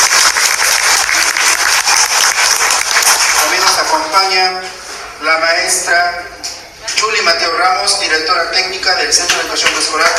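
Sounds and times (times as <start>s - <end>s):
audience applause: 0.0s - 4.0s
speech: 4.3s - 10.1s.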